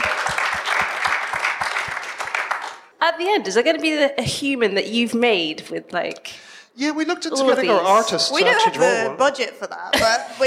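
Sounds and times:
audience applause: 0.0s - 2.9s
speech: 3.2s - 10.4s.

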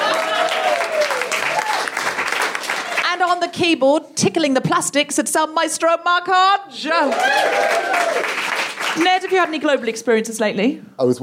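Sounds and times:
audience applause: 0.0s - 3.1s, 6.9s - 9.7s
speech: 3.4s - 11.2s.

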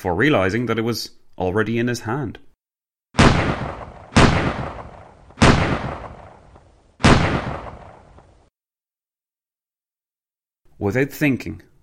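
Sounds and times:
speech: 0.0s - 2.5s, 10.8s - 11.7s
Colt 1911 pistol shots: 3.2s - 8.4s.

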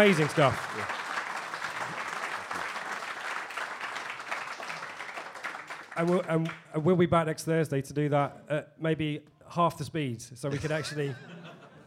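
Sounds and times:
speech: 0.0s - 0.9s, 6.0s - 11.4s
audience applause: 0.0s - 6.6s
laughter: 10.5s - 11.8s.

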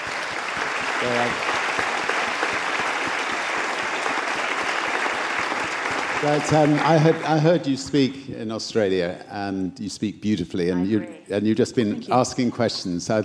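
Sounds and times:
crowd clapping: 0.0s - 8.1s
speech: 1.0s - 1.6s, 6.2s - 13.2s.

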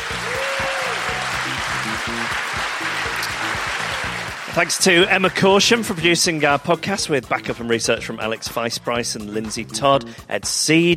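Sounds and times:
audience applause: 0.0s - 6.0s
speech: 4.6s - 10.9s.

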